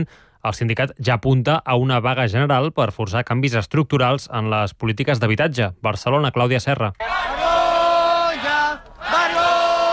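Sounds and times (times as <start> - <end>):
speech: 0.0 - 7.4
protest crowd shouting shame: 7.0 - 9.9.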